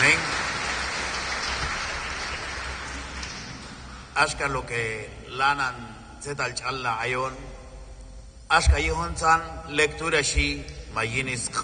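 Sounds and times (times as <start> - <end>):
church congregation clapping loudly during a service: 0.0 - 4.2
speech: 4.2 - 7.5, 8.5 - 11.6.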